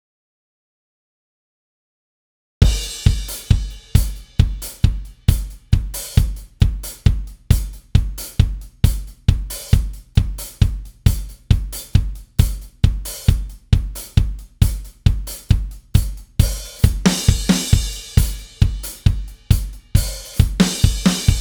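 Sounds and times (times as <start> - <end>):
drums: 2.6 - 21.3.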